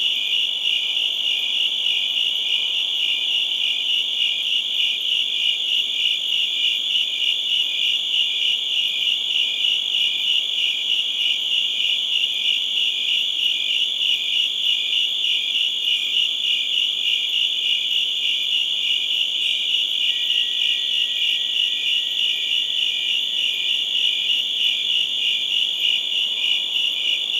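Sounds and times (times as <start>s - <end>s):
crickets chirping: 0.0s - 27.3s
faint whistle-like tone: 20.0s - 22.0s.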